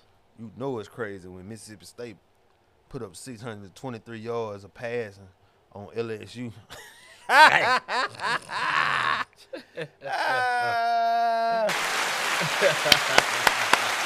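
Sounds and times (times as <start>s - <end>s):
speech: 0.4s - 2.3s, 2.9s - 13.6s
laughter: 6.8s - 14.0s
hand clapping: 11.7s - 14.0s.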